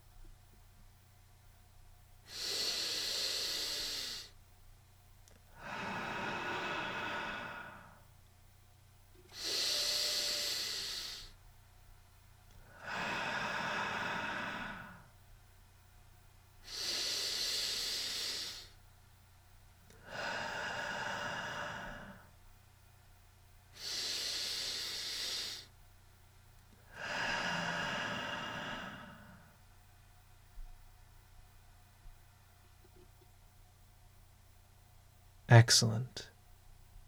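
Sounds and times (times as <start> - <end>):
slow deep breathing during a guided breathing exercise: 2.3 - 4.4, 5.5 - 8.1, 9.2 - 11.4, 12.6 - 15.2, 16.6 - 18.8, 19.9 - 22.4, 23.8 - 25.7, 26.7 - 29.6
speech: 35.5 - 36.3.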